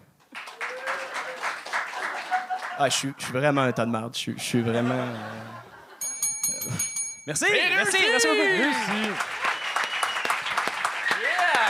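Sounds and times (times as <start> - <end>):
crowd applauding: 0.3 - 3.0, 7.9 - 11.6
faint cheer: 0.5 - 2.6, 7.8 - 11.6
laughter: 1.2 - 6.0
speech: 2.8 - 5.6, 6.6 - 9.4.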